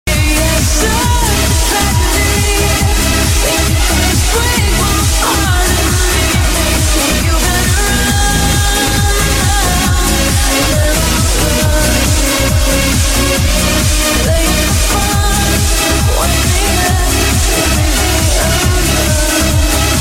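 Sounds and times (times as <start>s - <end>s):
trance music: 0.1s - 19.9s.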